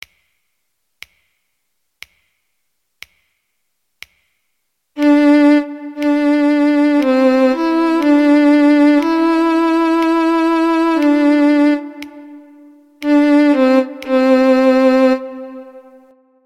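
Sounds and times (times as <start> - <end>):
melodic dictation exercise melody: 5.0 - 16.1.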